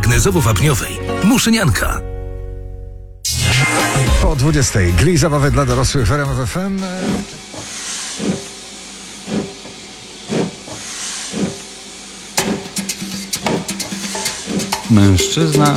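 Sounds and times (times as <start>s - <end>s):
speech: 0.1s - 2.2s, 4.2s - 7.4s, 14.9s - 15.7s
steam locomotive hissing: 6.6s - 15.0s.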